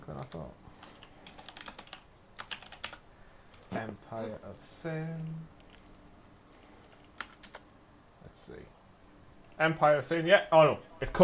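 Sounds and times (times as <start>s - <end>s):
keyboard typing: 0.1s - 3.6s, 4.3s - 7.6s
speech: 0.3s - 0.6s, 3.7s - 5.6s, 8.5s - 8.8s, 9.6s - 11.2s.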